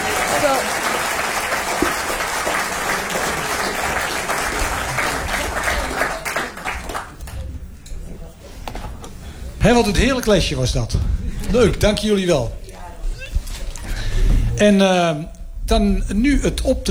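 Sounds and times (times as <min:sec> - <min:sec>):
audience applause: 0:00.0 - 0:07.7
laughter: 0:00.0 - 0:15.3
speech: 0:09.6 - 0:12.6, 0:14.6 - 0:16.8.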